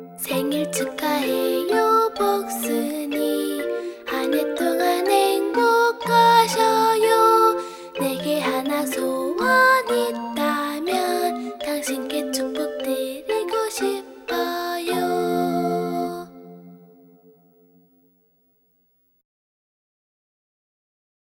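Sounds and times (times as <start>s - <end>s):
birthday song with words and music in Korean: 0.2s - 16.6s.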